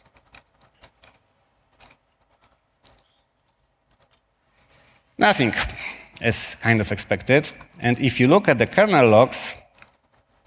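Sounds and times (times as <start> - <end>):
computer keyboard typing as commands are entered: 0.0 - 3.1, 3.9 - 4.2, 7.2 - 10.4
speech: 5.2 - 9.6.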